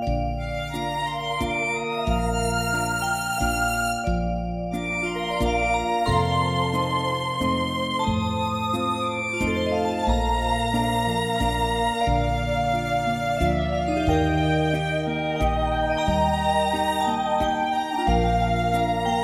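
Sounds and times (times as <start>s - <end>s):
Christmas carol: 0.0s - 19.2s.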